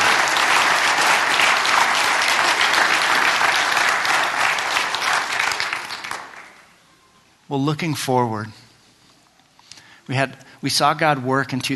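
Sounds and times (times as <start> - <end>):
audience applause: 0.0 - 6.8
speech: 7.5 - 8.6, 10.1 - 11.7.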